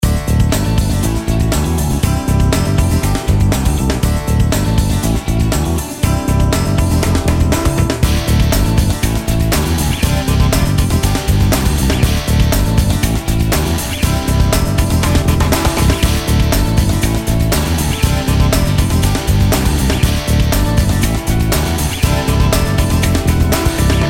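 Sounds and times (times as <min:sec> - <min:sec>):
grooving pop rock music: 0:00.0 - 0:24.0.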